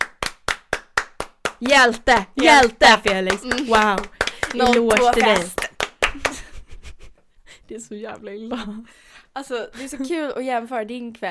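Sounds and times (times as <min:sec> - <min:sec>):
applause, hands clapping: 0:00.0 - 0:06.6
speech: 0:01.6 - 0:05.6, 0:07.7 - 0:11.2.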